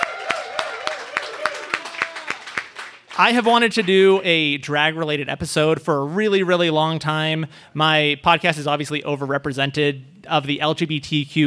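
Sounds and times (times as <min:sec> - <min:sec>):
live audience hand claps: 0:00.0 - 0:03.2
speech: 0:03.2 - 0:11.4.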